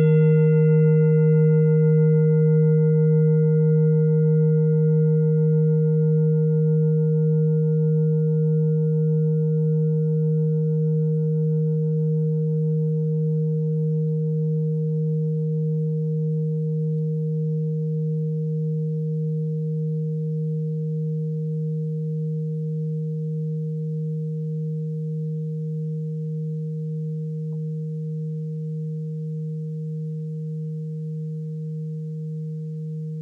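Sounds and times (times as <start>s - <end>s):
singing bowl from Ladakh: 0.0s - 33.2s.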